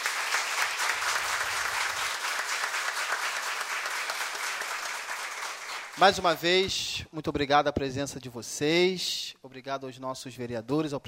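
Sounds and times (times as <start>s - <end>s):
applause: 0.0s - 6.6s
speech: 6.0s - 11.0s.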